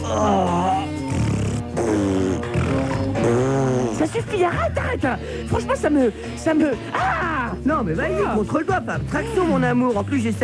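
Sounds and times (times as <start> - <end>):
fart: 1.0 - 4.2
speech: 4.1 - 10.4.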